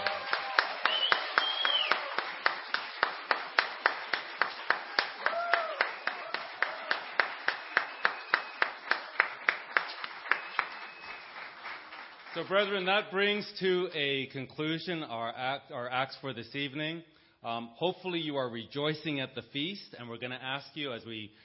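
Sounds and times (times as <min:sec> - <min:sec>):
rhythmic clapping: 0:00.0 - 0:13.1
whistle-like tones: 0:00.9 - 0:02.0, 0:10.3 - 0:11.3
speech: 0:12.4 - 0:21.4.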